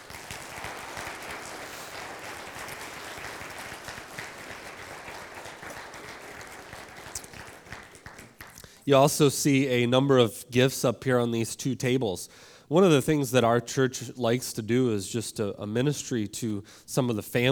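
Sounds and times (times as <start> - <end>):
audience applause: 0.0 - 8.6
speech: 8.8 - 17.5.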